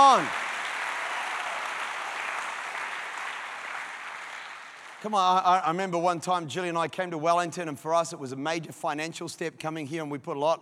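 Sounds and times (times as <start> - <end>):
speech: 0.0 - 0.5, 5.0 - 10.6
audience clapping: 0.0 - 5.7.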